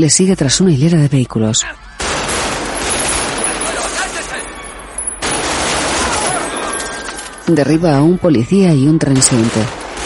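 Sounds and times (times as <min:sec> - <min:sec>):
speech: 0:00.0 - 0:02.2, 0:07.5 - 0:09.8
heavy gunfire from the street shootout with police in the film Heat: 0:02.0 - 0:04.5, 0:05.2 - 0:06.8, 0:09.2 - 0:10.0.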